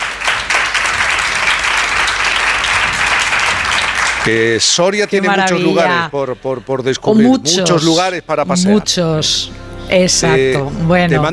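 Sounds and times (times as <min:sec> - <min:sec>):
audience applause: 0:00.0 - 0:04.8
speech: 0:04.2 - 0:11.3.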